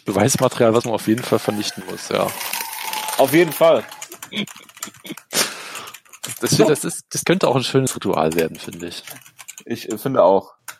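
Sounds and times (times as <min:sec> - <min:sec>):
speech: 0:00.0 - 0:02.6, 0:03.2 - 0:05.4, 0:06.2 - 0:10.6
paper note being fed into a paper shredder: 0:01.2 - 0:04.1.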